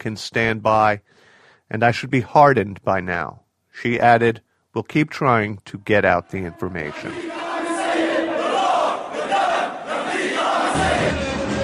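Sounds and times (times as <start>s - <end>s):
speech: 0.0s - 7.4s
crowd shouting and chanting in the streets of Homs at a tribute to killed journalists: 6.8s - 11.6s.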